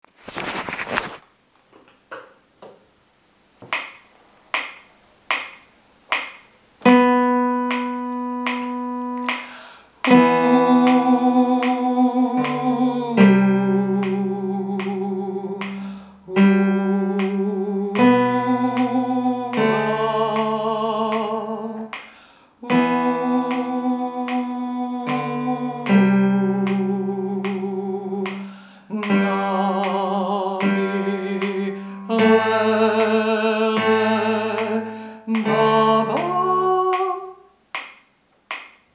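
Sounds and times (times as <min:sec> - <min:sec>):
tenor singing: 0:06.9 - 0:22.0, 0:22.6 - 0:37.5.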